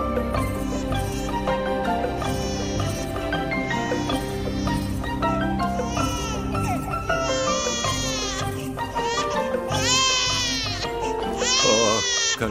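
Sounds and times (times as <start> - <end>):
baby crying and whimpering: 0.2 - 12.4.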